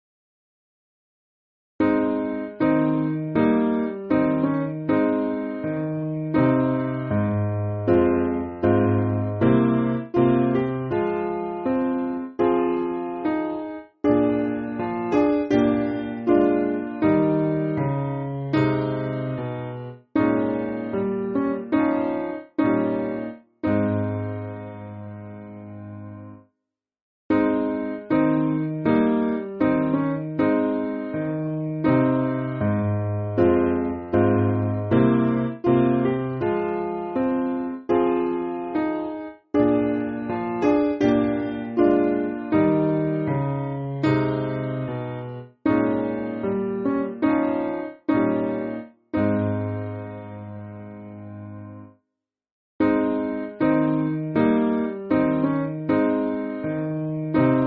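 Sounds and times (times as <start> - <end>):
piano backing music for churches: 1.8 - 26.4, 27.3 - 51.9, 52.8 - 57.6.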